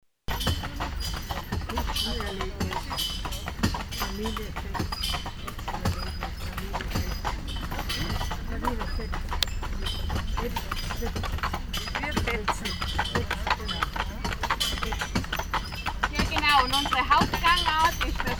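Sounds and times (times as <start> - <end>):
horses walking: 0.3 - 18.3.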